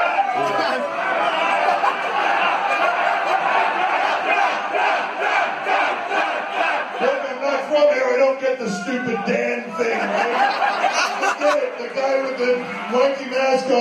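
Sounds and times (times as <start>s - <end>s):
WWE wrestling fans chanting in arena: 0.0s - 8.0s
laughter: 0.4s - 7.4s, 9.4s - 13.7s
speech: 8.3s - 13.7s.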